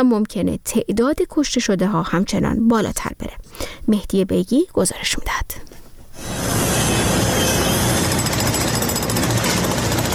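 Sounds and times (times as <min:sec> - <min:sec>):
speech: 0:00.0 - 0:06.3
rescue workers' drilling machinery in northern Syria and southern Turkey: 0:06.2 - 0:10.1.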